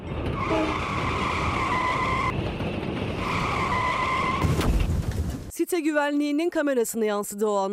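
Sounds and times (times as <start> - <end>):
constant rumbling background: 0.0 - 5.5
skidding car tires squealing: 0.3 - 2.4, 3.1 - 4.5
car crash impact: 3.1 - 5.5
speech: 5.7 - 7.7.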